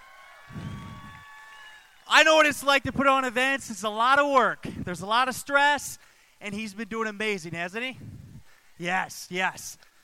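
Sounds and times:
audience applause and crowd noise: 0.0s - 2.4s
speech: 2.1s - 8.2s, 8.8s - 9.9s.

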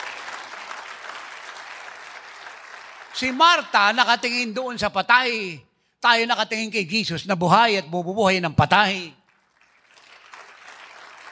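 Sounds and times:
audience applause: 0.0s - 3.4s, 9.3s - 11.2s
speech: 3.2s - 9.2s.

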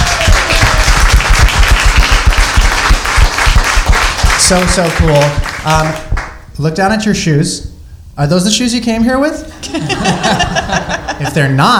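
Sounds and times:
audience cheering: 0.0s - 5.3s
audience applause: 0.0s - 6.0s
speech: 4.5s - 11.7s
laughter: 9.5s - 11.7s.

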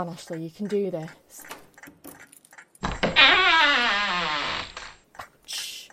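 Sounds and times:
speech: 0.0s - 2.0s
door creaking open: 2.8s - 5.0s.

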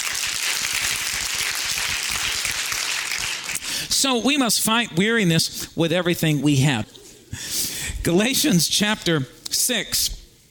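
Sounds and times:
crowd clapping: 0.0s - 3.7s
speech: 4.0s - 10.2s.

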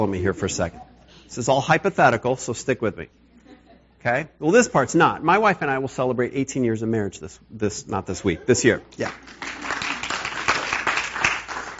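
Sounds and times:
speech: 0.0s - 3.2s, 4.0s - 9.6s
audience applause: 9.0s - 11.7s.

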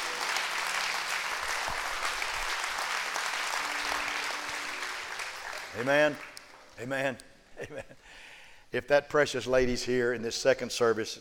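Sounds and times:
crowd clapping their hands: 0.0s - 6.9s
speech: 5.8s - 11.1s.

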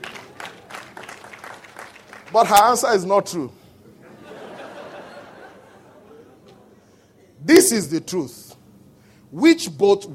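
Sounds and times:
audience clapping: 0.0s - 3.0s
speech: 2.3s - 3.6s, 7.7s - 8.4s, 9.3s - 10.1s
laughter: 3.8s - 6.8s.

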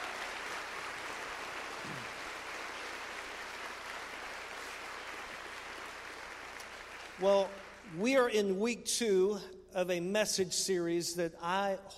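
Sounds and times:
audience applause: 0.0s - 7.9s
speech: 7.2s - 11.9s.

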